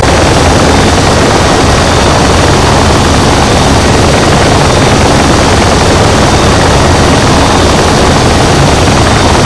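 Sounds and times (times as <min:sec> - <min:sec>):
Apache gunship helicopter: 0:00.0 - 0:09.4.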